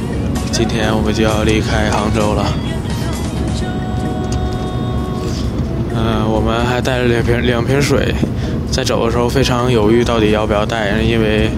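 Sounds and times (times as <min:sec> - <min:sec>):
car engine and road noise in an underground tunnel on the way to the airport: 0:00.0 - 0:11.5
speech: 0:00.6 - 0:02.8, 0:06.0 - 0:11.5.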